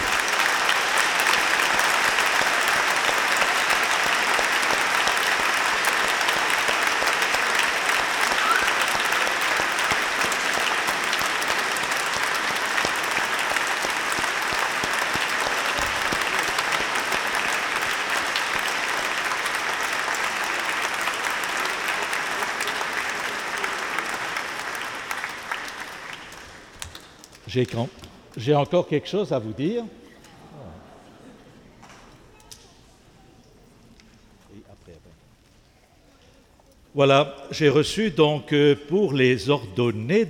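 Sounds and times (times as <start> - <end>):
audience applauding: 0.0 - 28.4
speech: 27.6 - 30.0, 37.0 - 40.2.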